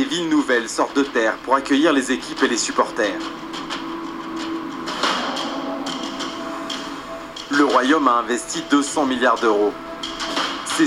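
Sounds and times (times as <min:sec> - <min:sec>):
steady low machinery hum: 0:00.0 - 0:10.8
speech: 0:00.1 - 0:03.8, 0:07.6 - 0:09.9
construction site hammering with metallic strikes: 0:02.3 - 0:10.8.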